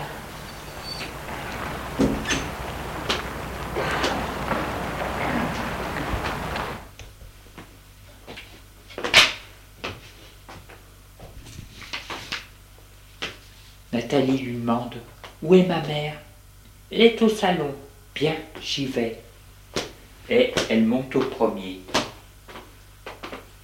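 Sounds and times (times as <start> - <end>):
door opening: 0.0 - 6.9
speech: 14.1 - 16.2, 16.9 - 19.2, 20.3 - 21.9.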